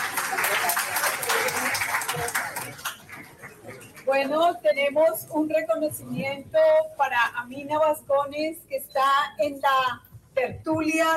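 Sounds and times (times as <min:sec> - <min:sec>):
audience applause: 0:00.0 - 0:04.0
speech: 0:04.1 - 0:11.1.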